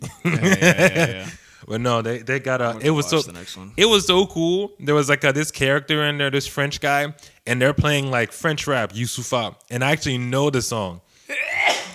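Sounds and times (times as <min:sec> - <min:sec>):
laughter: 0:00.0 - 0:01.4
speech: 0:00.2 - 0:11.4
sneeze: 0:11.3 - 0:11.9.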